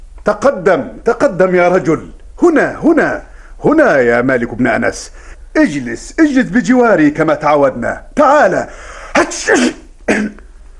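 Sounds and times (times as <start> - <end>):
speech: 0.2 - 10.4
caliph sneezing in an Arabic historical drama: 8.7 - 10.5.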